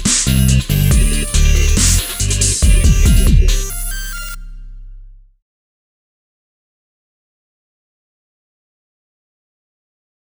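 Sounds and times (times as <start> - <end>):
funky dubstep music: 0.0 - 4.9.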